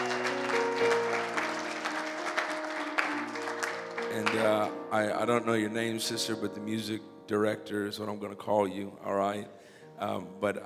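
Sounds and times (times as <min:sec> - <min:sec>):
audience applause: 0:00.0 - 0:04.8
speech: 0:04.2 - 0:10.6.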